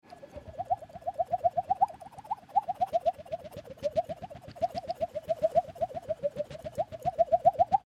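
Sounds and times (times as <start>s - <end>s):
fantasy creature flying: 0.1s - 7.8s.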